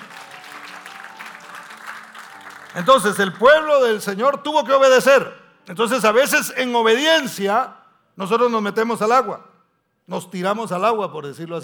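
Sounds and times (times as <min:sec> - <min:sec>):
audience applause: 0:00.0 - 0:03.7
speech: 0:02.7 - 0:09.5, 0:10.1 - 0:11.6.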